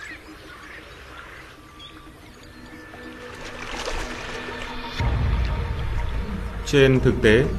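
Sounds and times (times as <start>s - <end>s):
water splashing: 0.0s - 7.5s
speech: 6.7s - 7.5s.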